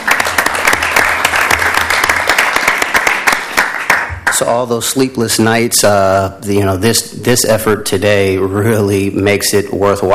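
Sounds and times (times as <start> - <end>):
audience applause: 0.0 - 4.5
speech: 4.4 - 10.1.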